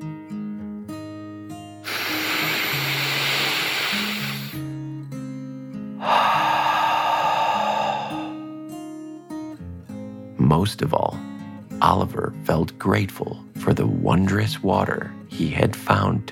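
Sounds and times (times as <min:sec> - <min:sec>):
deep breath in and out: 0:01.8 - 0:04.7, 0:06.0 - 0:08.6
speech: 0:10.6 - 0:16.3.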